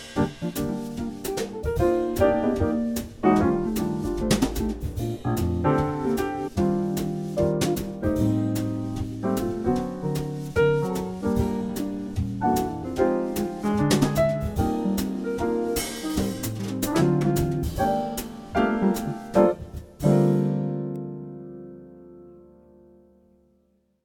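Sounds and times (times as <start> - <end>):
bass playing a jazz standard: 0.0 - 21.0.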